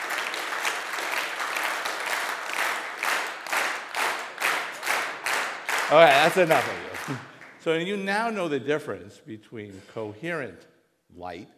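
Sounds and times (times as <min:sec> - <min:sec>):
audience clapping in a round of applause: 0:00.0 - 0:08.1
speech: 0:05.9 - 0:11.5.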